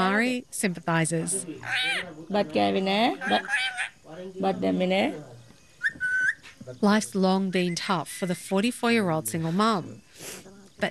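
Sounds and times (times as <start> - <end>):
speech: 0.0 - 5.3, 6.7 - 10.8
parrot squawking: 1.4 - 2.2, 3.0 - 4.1, 5.8 - 6.5.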